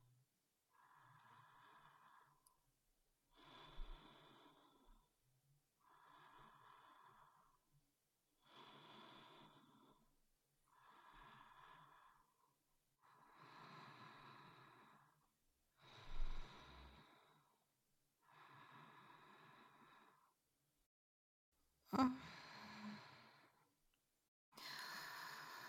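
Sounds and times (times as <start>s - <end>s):
sleep breathing: 0.7s - 2.5s, 3.4s - 5.1s, 5.8s - 7.6s, 8.4s - 10.1s, 10.7s - 17.6s, 18.2s - 20.4s, 21.9s - 23.6s, 24.6s - 25.6s
person whispering: 21.9s - 23.0s.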